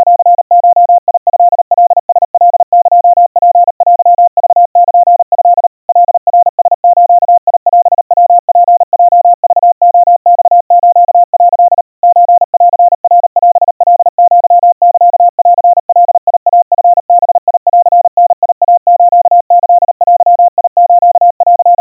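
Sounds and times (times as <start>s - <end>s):
crispy 700 Hz Morse code tones at 140 cpm: 0.0s - 21.8s.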